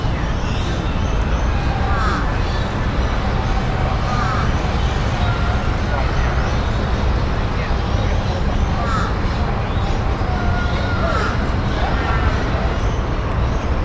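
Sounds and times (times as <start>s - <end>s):
birds in botanic gardens by a river: 0.0s - 13.8s
construction noise: 0.0s - 13.8s
distant city hum: 0.0s - 13.8s
people in botanic gardens by a river: 0.0s - 13.8s.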